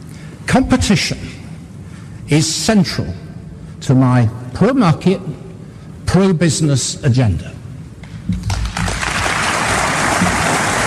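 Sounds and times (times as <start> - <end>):
speech: 0.5 - 1.4, 2.3 - 3.2, 3.8 - 5.4, 6.1 - 7.6, 8.3 - 8.5
crowd audience applause: 8.4 - 10.8.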